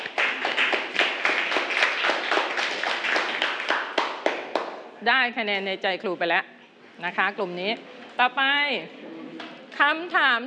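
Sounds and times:
classroom clapping: 0.0s - 4.9s
speech: 5.0s - 9.0s, 9.8s - 10.4s.

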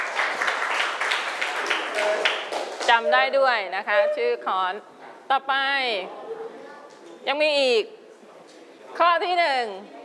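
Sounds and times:
children clapping for a classmate in a classroom: 0.0s - 3.0s
speech: 2.9s - 6.2s, 7.2s - 8.0s, 9.0s - 10.0s.

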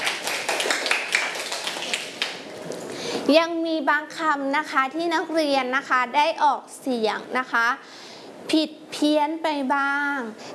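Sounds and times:
students clapping for themselves: 0.0s - 2.8s
speech: 3.3s - 10.5s.

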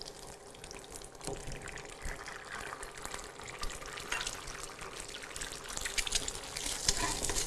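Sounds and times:
egg frying in a pan: 0.0s - 7.4s
faint scraping and stirring: 6.0s - 7.4s.

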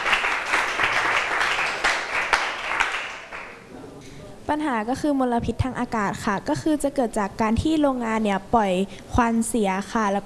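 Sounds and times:
classroom applause for a presenting group: 0.0s - 3.6s
speech: 4.5s - 10.2s.

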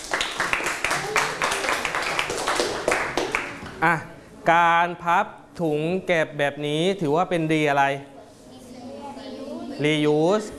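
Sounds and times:
students clapping: 0.0s - 3.7s
speech: 3.8s - 8.1s, 9.8s - 10.5s.

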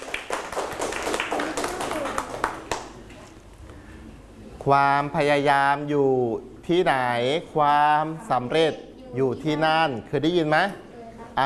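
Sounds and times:
audience clapping for a classmate: 0.0s - 3.0s
speech: 4.6s - 10.8s.

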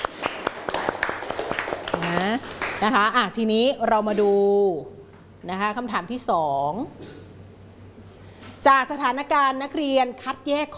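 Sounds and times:
schoolchildren in a Thai classroom clapping for a classmate: 0.0s - 3.2s
speech: 2.8s - 7.2s, 8.6s - 10.7s.

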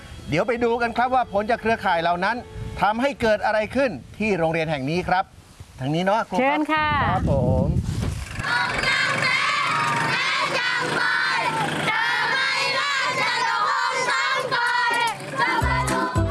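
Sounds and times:
speech: 0.3s - 7.8s
schoolchildren shouting and cheering from a full truck: 8.4s - 16.2s.

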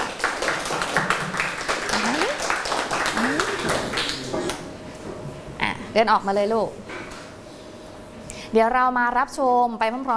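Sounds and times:
classroom people clapping: 0.0s - 4.7s
speech: 6.0s - 6.8s, 8.5s - 10.1s.

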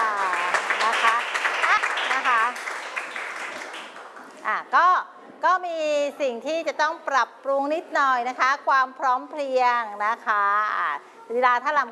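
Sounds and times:
audience applause: 0.0s - 4.2s
speech: 5.5s - 11.8s.

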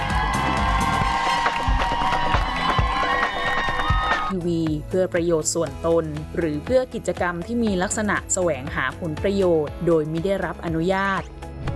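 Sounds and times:
audience applause and cheering: 0.0s - 4.4s
speech: 4.3s - 11.4s.

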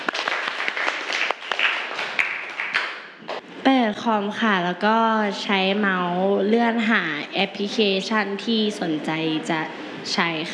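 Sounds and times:
classroom students applauding: 0.0s - 3.2s
speech: 3.9s - 10.5s.

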